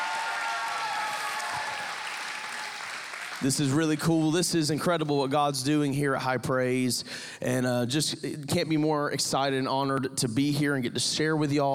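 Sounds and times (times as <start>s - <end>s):
crowd applauding and cheering: 0.0s - 4.5s
speech: 3.4s - 11.7s.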